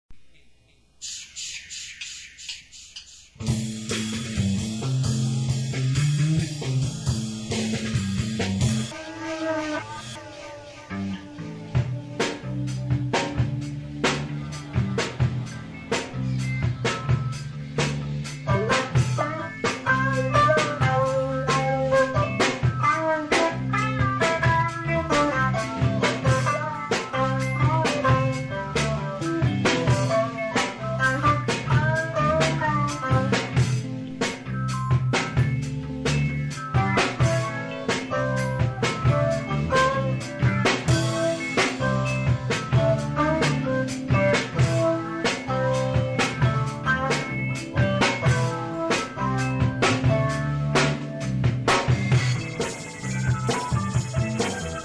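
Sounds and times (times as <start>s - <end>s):
instrumental music: 0.2s - 54.8s.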